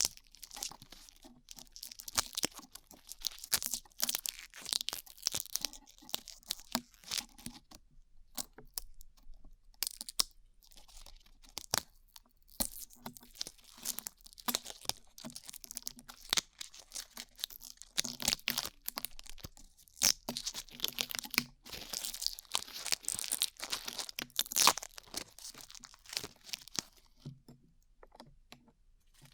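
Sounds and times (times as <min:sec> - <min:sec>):
glue being peeled off ears: 0:00.0 - 0:07.4, 0:12.5 - 0:27.2.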